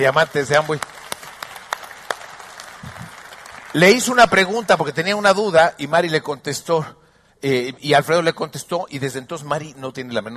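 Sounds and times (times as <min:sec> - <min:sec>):
speech: 0:00.0 - 0:00.9, 0:03.7 - 0:10.3
audience applause: 0:00.0 - 0:05.0.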